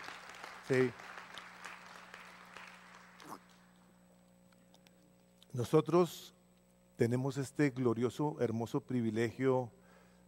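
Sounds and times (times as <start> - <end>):
audience applause: 0.0 - 3.4
speech: 0.7 - 1.1, 5.6 - 6.4, 7.0 - 9.8.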